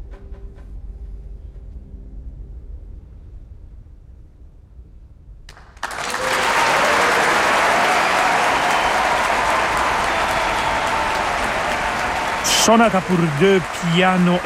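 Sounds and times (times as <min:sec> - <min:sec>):
concert audience applause: 0:05.5 - 0:14.4
speech: 0:12.7 - 0:14.4.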